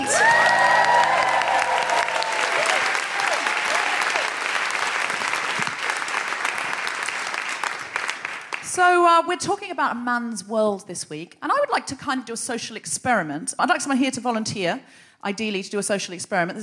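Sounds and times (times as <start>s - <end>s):
live stage-show audience applause welcoming a performer: 0.0s - 8.7s
speech: 8.8s - 16.6s.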